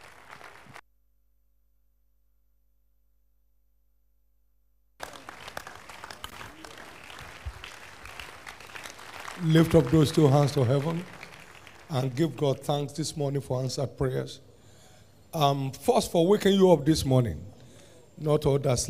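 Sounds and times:
audience hand clapping: 0.0 - 0.8, 5.0 - 12.4
speech: 9.4 - 11.2, 11.9 - 14.5, 15.3 - 17.5, 18.2 - 18.8.

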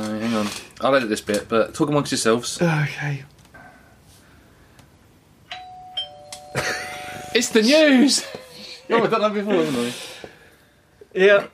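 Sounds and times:
speech: 0.3 - 3.3, 7.4 - 10.2, 11.1 - 11.5
doorbell chimes: 5.5 - 8.2.

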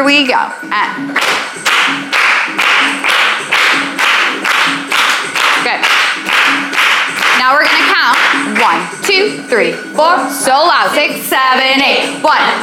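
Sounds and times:
speech: 0.0 - 2.0, 7.6 - 12.6
group clapping to the beat: 1.2 - 9.2.

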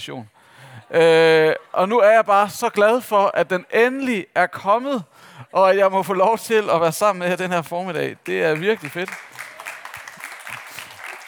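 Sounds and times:
speech: 0.0 - 9.3
crowd clapping: 8.2 - 11.2.

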